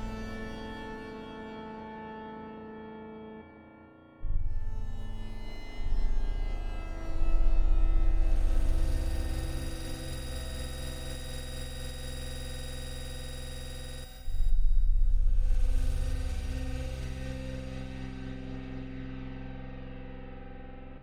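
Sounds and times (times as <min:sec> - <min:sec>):
glow atmospheric background: 0:05.8 - 0:21.0.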